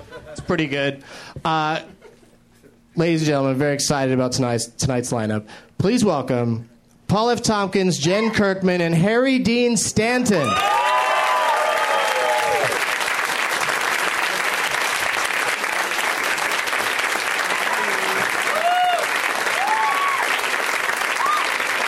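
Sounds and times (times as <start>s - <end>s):
speech: 0.4s - 2.0s, 3.0s - 10.9s
audience applause: 10.4s - 21.8s.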